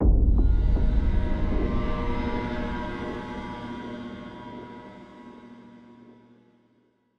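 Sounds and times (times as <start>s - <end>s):
pain music stinger: 0.0s - 5.2s.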